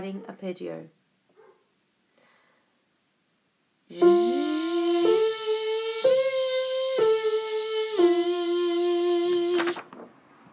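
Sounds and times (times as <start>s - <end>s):
Grade 1 technical exercises on an instrument: 3.9s - 9.8s.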